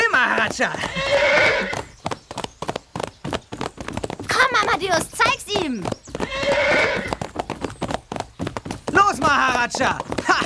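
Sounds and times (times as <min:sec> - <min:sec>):
horse whinnying: 0:00.0 - 0:02.0, 0:06.1 - 0:08.1
horses galloping in a race toward a quarry: 0:00.0 - 0:10.4
speech: 0:00.5 - 0:01.8, 0:04.8 - 0:06.0, 0:09.6 - 0:10.4.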